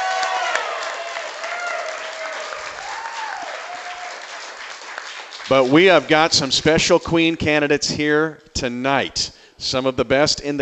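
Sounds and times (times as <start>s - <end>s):
audience cheering: 0.0s - 6.3s
speech: 5.5s - 10.6s.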